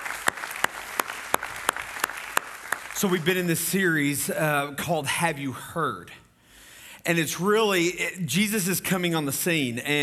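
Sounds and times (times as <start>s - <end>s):
audience applause welcoming online viewers: 0.0s - 3.4s
speech: 3.0s - 6.2s, 7.0s - 10.0s.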